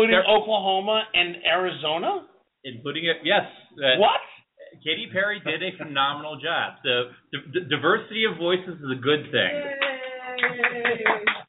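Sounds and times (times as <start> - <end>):
speech: 0.0 - 11.4
people clapping in studio: 9.4 - 11.4.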